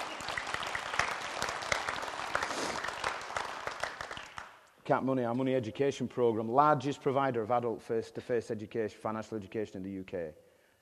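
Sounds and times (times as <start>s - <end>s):
audience applause: 0.0s - 4.6s
speech: 4.9s - 10.5s.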